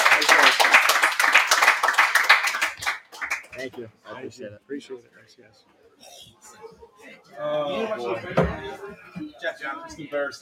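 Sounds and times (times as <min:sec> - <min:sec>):
round of applause: 0:00.0 - 0:03.6
speech: 0:03.6 - 0:10.4.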